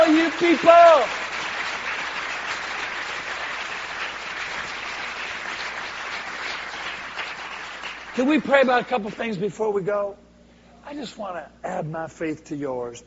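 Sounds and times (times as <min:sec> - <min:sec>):
audience clapping hands: 0:00.0 - 0:09.8
speech: 0:00.4 - 0:01.3, 0:08.2 - 0:10.2, 0:10.8 - 0:13.0.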